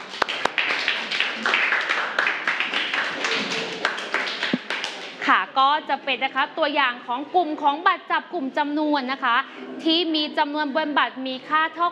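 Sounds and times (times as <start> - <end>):
classroom applause: 0.0 - 5.2
speech: 5.6 - 11.9.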